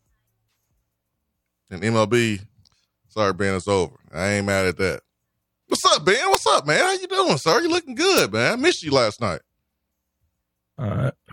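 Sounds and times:
speech: 1.7s - 2.5s, 3.1s - 5.1s, 5.7s - 9.5s, 10.8s - 11.3s
throaty cough: 10.8s - 11.3s.

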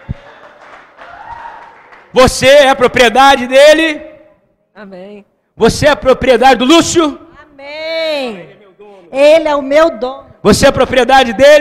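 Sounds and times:
applause: 0.0s - 2.4s
speech: 2.1s - 4.1s, 4.8s - 7.2s, 9.1s - 11.5s.

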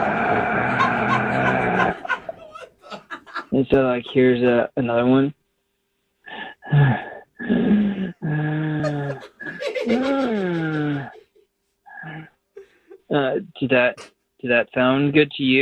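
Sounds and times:
heavy exaggerated breathing on a voice message: 0.0s - 2.4s, 6.2s - 11.2s, 11.9s - 13.0s
laughter: 0.0s - 4.5s, 8.2s - 11.4s, 12.0s - 13.2s
speech: 3.6s - 5.4s, 13.1s - 15.6s.

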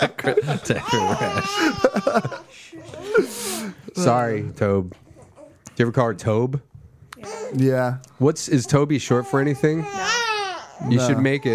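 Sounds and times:
speech: 0.0s - 2.7s, 4.0s - 5.0s, 5.8s - 10.2s, 10.8s - 11.5s
laughter: 0.0s - 3.4s
baby crying and fussing: 0.7s - 3.3s, 7.2s - 7.6s, 8.7s - 11.5s.

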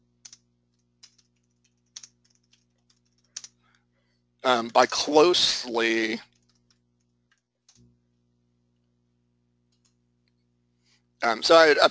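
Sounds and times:
low steady hum: 0.0s - 11.8s
computer keyboard keys clacking: 0.2s - 3.6s, 6.3s - 7.8s
speech: 4.4s - 6.3s, 11.2s - 11.8s.

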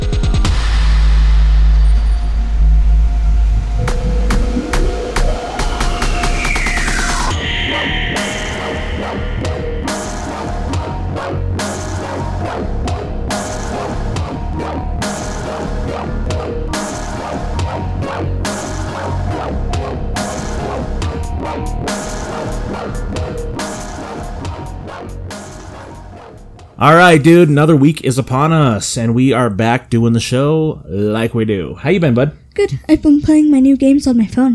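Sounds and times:
electronic podcast theme tune with bass drone and driving beat: 0.0s - 27.9s
speech: 26.9s - 34.5s.

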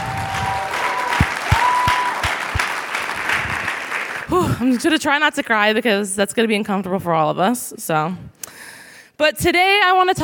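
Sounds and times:
audience applause: 0.0s - 4.4s
speech: 4.3s - 10.2s.

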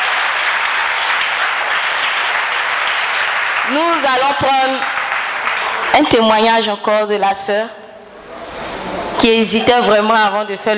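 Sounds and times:
congregation clapping at a church service after a testimony of healing: 0.0s - 6.8s
speech: 3.7s - 5.0s, 6.0s - 7.8s, 9.2s - 10.7s.

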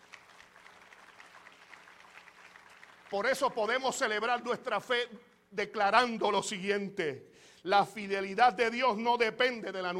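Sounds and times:
audience applause: 0.0s - 3.6s
speech: 3.1s - 9.9s.

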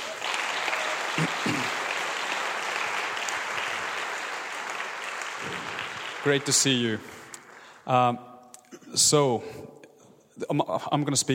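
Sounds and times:
audience applause: 0.0s - 7.8s
speech: 6.2s - 7.2s, 7.9s - 8.3s, 8.9s - 9.8s, 10.4s - 11.3s.

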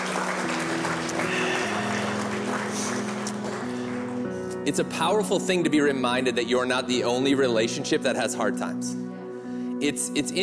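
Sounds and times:
audience clapping: 0.0s - 4.6s
speech: 4.7s - 9.1s, 9.8s - 10.4s.

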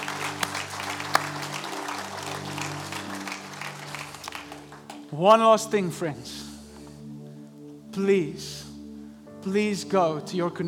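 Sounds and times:
audience clapping hands: 0.0s - 5.4s
speech: 5.1s - 6.4s, 8.0s - 8.6s, 9.4s - 10.6s.

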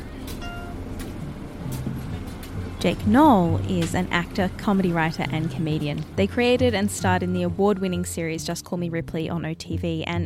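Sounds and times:
bus clatter: 0.0s - 8.0s
bus engine rumble: 0.0s - 10.2s
transit card reader beeps boarding a bus in Chicago: 0.3s - 1.1s
speech: 2.8s - 10.2s.

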